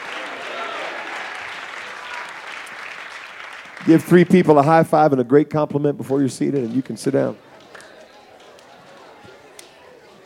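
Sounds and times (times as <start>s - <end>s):
audience applauding, clapping hands: 0.0s - 5.0s, 6.4s - 9.8s
speech: 3.8s - 7.5s.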